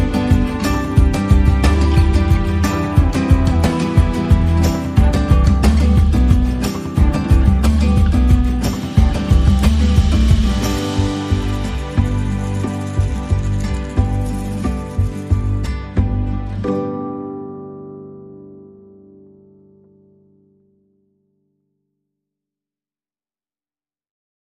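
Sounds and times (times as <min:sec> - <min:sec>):
Latin lounge music: 0:00.0 - 0:18.0.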